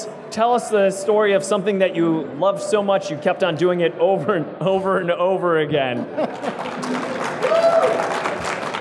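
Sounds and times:
speech: 0.0 - 7.0
laughter: 5.8 - 7.4
crowd clapping: 6.2 - 8.8
high whoop: 7.4 - 8.2.

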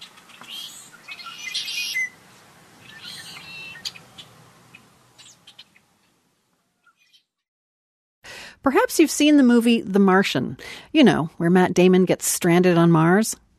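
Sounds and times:
birds chirping and singing: 0.0 - 2.2, 2.8 - 6.2, 6.8 - 7.3
soft hiss: 0.0 - 6.8, 8.3 - 13.5
speech: 8.6 - 13.4.

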